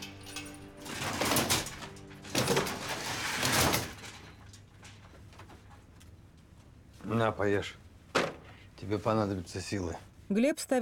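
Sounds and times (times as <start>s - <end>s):
metal grate being unlocked and swung open: 0.0s - 5.9s
speech: 7.1s - 7.8s, 8.8s - 10.8s.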